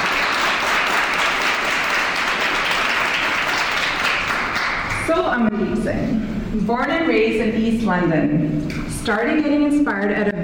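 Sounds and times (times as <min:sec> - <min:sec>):
audience applause: 0:00.0 - 0:05.0
speech: 0:05.1 - 0:10.4.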